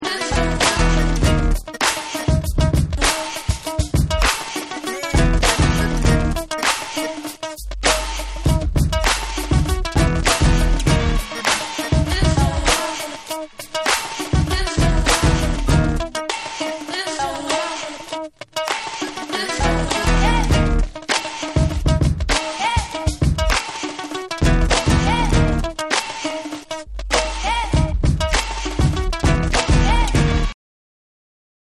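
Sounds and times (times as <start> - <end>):
instrumental music: 0.0 - 30.6.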